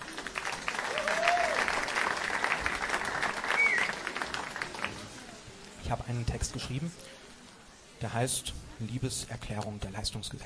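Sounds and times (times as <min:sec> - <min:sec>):
audience applause: 0:00.0 - 0:05.5
whistles: 0:03.5 - 0:04.0
speech: 0:05.9 - 0:07.2, 0:08.0 - 0:10.4.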